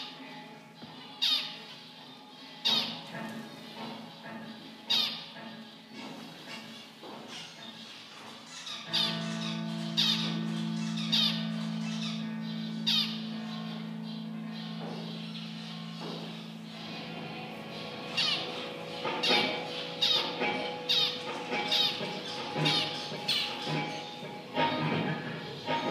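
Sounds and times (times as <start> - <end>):
birds: 0.0 - 25.8
guitars: 8.8 - 25.8.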